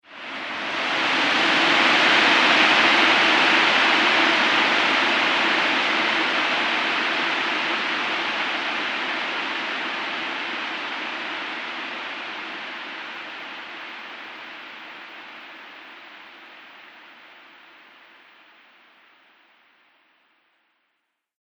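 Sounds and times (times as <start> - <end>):
howling wind in a scary soundscape: 0.1 - 14.6.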